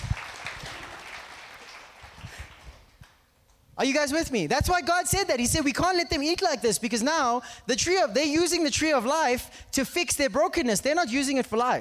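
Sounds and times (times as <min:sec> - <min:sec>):
audience applause: 0:00.0 - 0:03.0
speech: 0:03.8 - 0:11.7.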